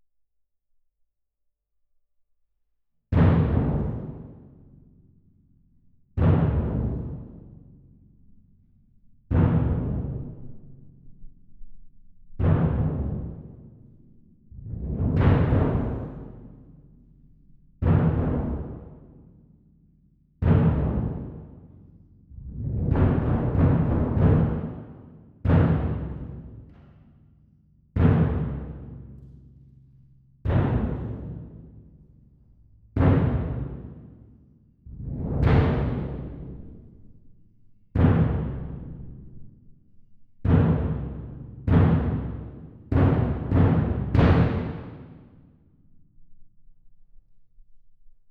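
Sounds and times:
percussion: 3.1 - 45.9.

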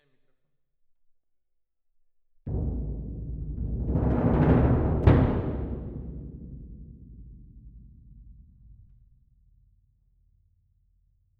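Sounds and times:
percussion: 2.5 - 9.4.

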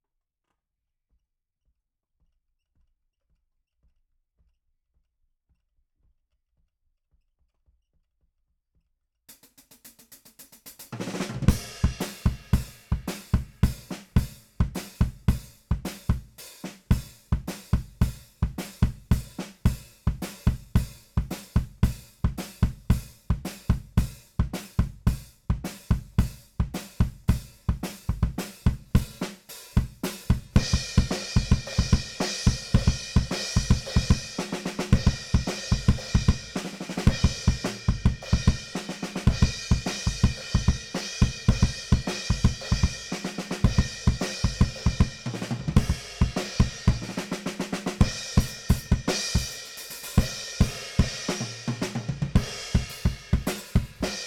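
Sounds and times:
bass drum: 11.2 - 54.2.

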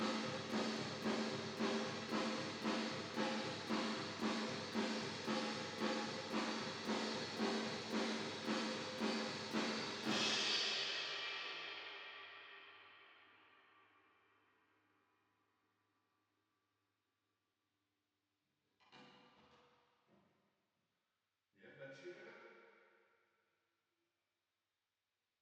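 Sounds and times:
drums with reverb: 0.0 - 12.6.

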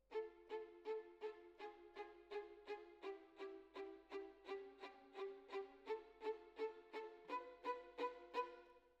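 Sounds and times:
violin solo: 0.0 - 8.8.

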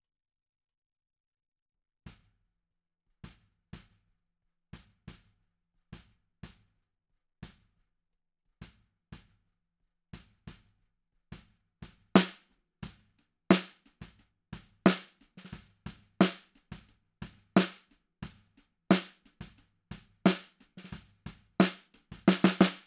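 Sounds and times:
snare drum: 12.2 - 12.4, 13.5 - 13.8, 14.9 - 16.8, 17.6 - 17.8, 18.9 - 19.6, 20.3 - 22.8.

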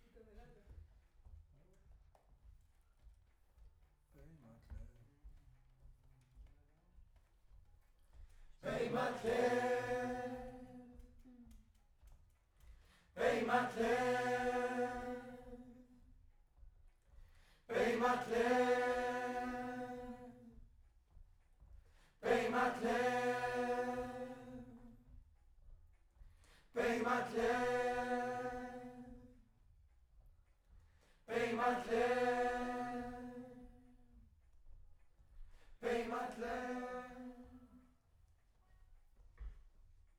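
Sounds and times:
distant choir: 8.6 - 11.4, 12.7 - 16.3, 17.3 - 20.6, 22.1 - 25.2, 26.5 - 29.6, 31.2 - 34.6, 35.7 - 38.0.

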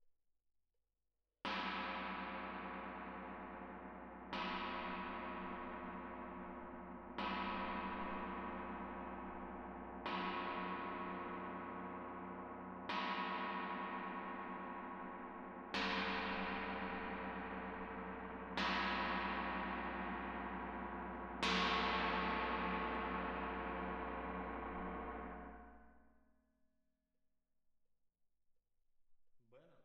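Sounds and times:
tam-tam: 1.5 - 26.2.

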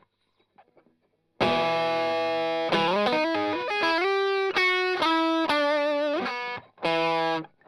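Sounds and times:
strumming: 1.4 - 7.5.

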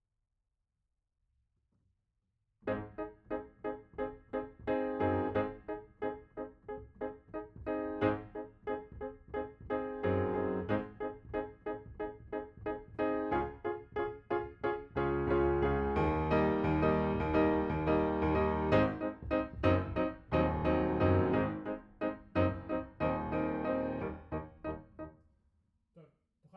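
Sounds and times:
piano note B: 2.7 - 25.1.

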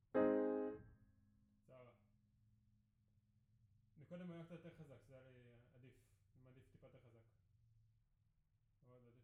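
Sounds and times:
piano note B: 0.0 - 0.8.

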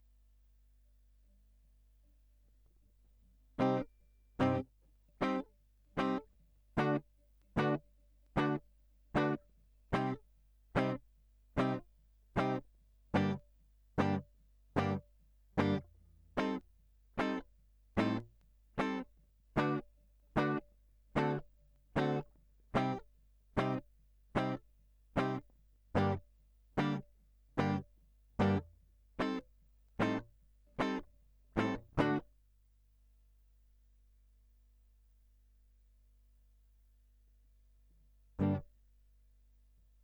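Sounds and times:
guitar line: 3.6 - 4.6, 5.2 - 6.2, 6.8 - 7.0, 7.6 - 7.8, 8.4 - 8.6, 9.2 - 9.4, 10.0 - 10.2, 10.8 - 11.0, 11.6 - 11.8, 12.4 - 12.6, 13.2 - 13.4, 14.0 - 14.2, 14.8 - 15.0, 15.6 - 16.6, 17.2 - 17.4, 18.0 - 18.2, 18.8 - 19.0, 19.6 - 19.8, 20.4 - 20.6, 21.2 - 21.4, 22.0 - 22.2, 22.8 - 23.0, 23.6 - 23.8, 24.4 - 24.6, 25.2 - 25.4, 26.0 - 26.2, 26.8 - 27.0, 27.6 - 27.8, 28.4 - 29.4, 30.0 - 30.2, 30.8 - 32.2, 38.4 - 38.6.

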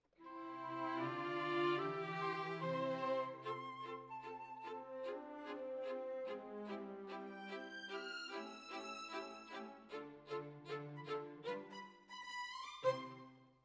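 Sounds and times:
violins: 0.2 - 13.5.

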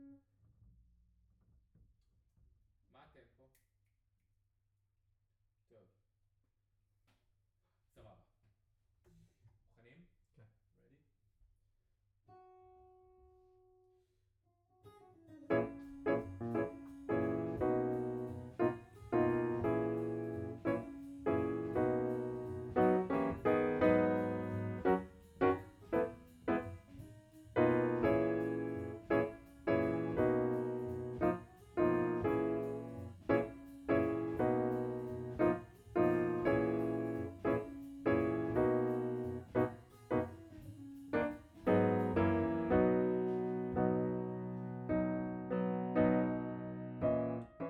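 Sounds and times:
piano note B: 15.5 - 47.6.

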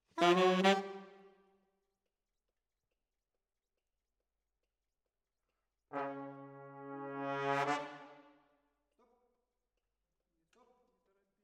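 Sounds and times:
saxophone: 0.1 - 1.3, 6.0 - 8.2.

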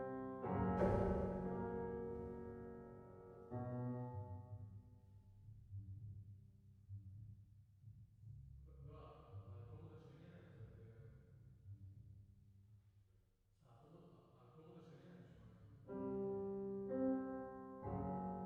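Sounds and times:
piano: 0.0 - 5.4, 15.8 - 18.4.

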